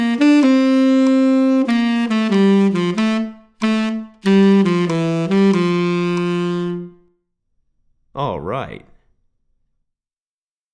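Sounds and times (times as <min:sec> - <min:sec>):
tenor saxophone playing moving eighth notes: 0:00.0 - 0:07.2.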